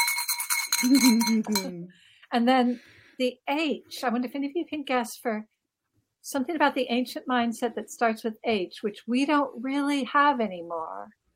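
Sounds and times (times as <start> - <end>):
apotropaic bell ringing: 0.0 - 1.7
speech: 0.8 - 5.6, 6.2 - 11.2.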